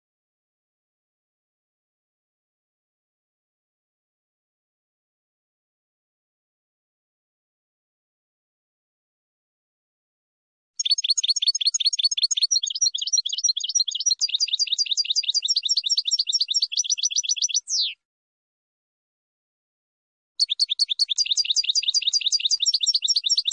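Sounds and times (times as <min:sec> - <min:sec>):
finch song: 0:10.8 - 0:18.0, 0:20.4 - 0:23.5.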